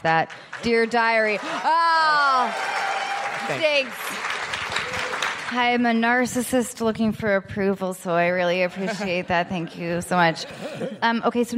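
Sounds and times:
speech: 0.0s - 2.9s, 3.5s - 11.5s
applause: 0.1s - 5.9s.

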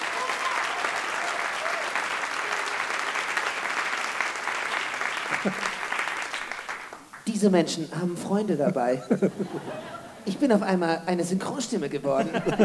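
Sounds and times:
audience applause at a comedy show: 0.0s - 7.2s
laughter: 5.3s - 5.8s, 8.6s - 10.3s, 12.1s - 12.6s
speech: 5.4s - 5.7s, 7.4s - 12.6s.

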